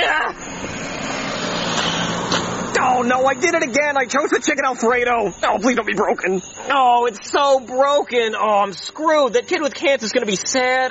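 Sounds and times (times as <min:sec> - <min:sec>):
car coming back, engine roaring: 0:00.0 - 0:08.4
speech: 0:03.0 - 0:10.9.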